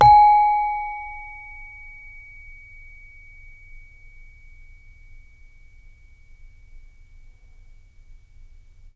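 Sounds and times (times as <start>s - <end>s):
saron playing G sharp 3: 0.0s - 2.8s.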